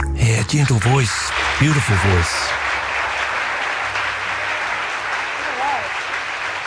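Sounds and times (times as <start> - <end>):
audience applause after a song: 0.2 - 6.6
speech: 0.5 - 2.7.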